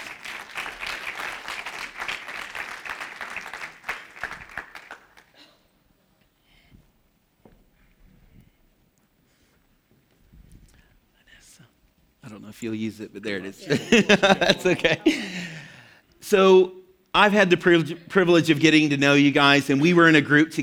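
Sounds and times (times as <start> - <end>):
audience clapping to welcome two people onto the stage: 0.0 - 5.4
speech: 12.4 - 15.4, 16.3 - 20.6
laughter: 13.5 - 15.9.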